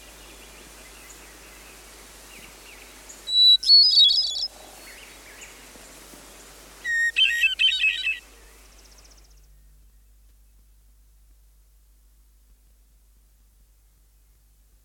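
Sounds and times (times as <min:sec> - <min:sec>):
songbirds singing: 0:00.0 - 0:05.6, 0:06.8 - 0:10.6
hermit thrush singing: 0:02.3 - 0:05.6, 0:06.8 - 0:10.1.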